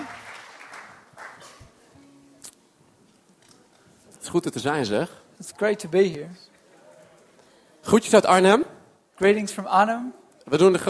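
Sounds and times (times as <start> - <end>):
audience applause: 0.0 - 1.7
speech: 4.3 - 6.5, 7.9 - 10.8.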